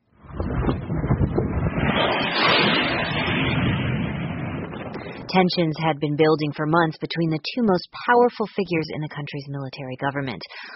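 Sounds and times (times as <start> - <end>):
explosions in Sudan's capital: 0.1 - 6.1
loud whir of jets over Sudan's capital: 1.4 - 5.3
speech: 5.3 - 10.7.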